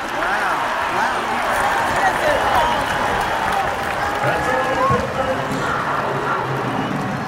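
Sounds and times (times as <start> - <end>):
huge stadium crowd roaring and cheering: 0.0 - 7.2
scattered clapping: 0.0 - 7.2
whistles and shouts: 6.5 - 7.2.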